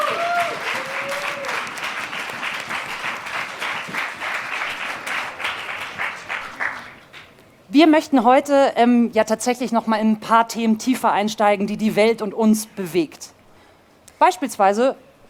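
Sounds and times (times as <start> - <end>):
loud sustained crowd applause: 0.0 - 7.3
speech: 7.8 - 13.4, 14.2 - 15.0.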